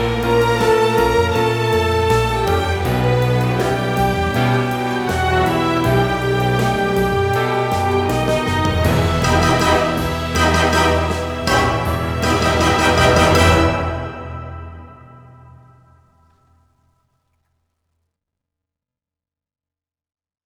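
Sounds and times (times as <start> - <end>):
musical sting: 0.0 - 16.0.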